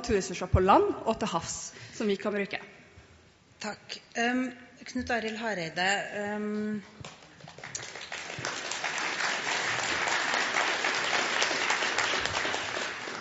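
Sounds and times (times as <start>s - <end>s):
speech: 0.0s - 2.8s, 3.6s - 7.2s
delayed applause: 7.0s - 13.1s.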